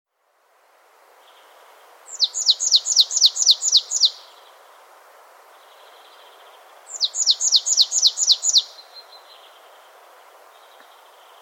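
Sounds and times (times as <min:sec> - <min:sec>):
Poecile palustris marsh tit calling: 0:02.1 - 0:04.3, 0:06.9 - 0:09.5.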